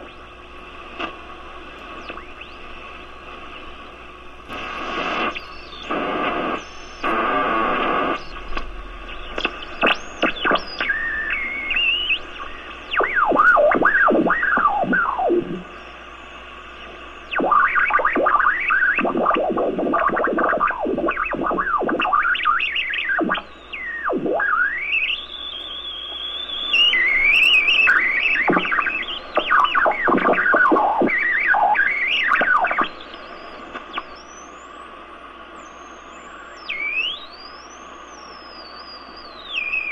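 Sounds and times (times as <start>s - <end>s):
electronic machine static: 0.0s - 39.9s.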